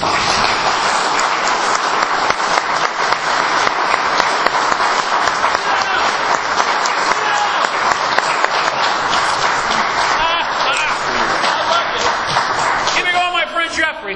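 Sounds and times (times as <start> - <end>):
audience applause welcoming a performer: 0.0 - 14.0.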